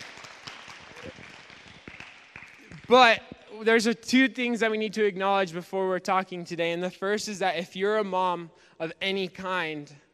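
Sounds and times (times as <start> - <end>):
audience clapping: 0.0 - 3.5
speech: 2.9 - 10.0.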